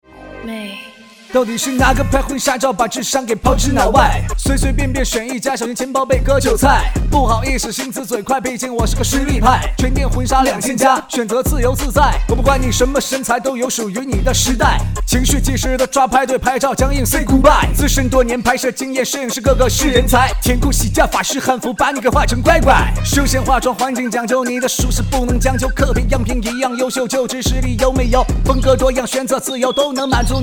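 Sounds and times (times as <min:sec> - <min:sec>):
rapping: 0:01.3 - 0:30.4.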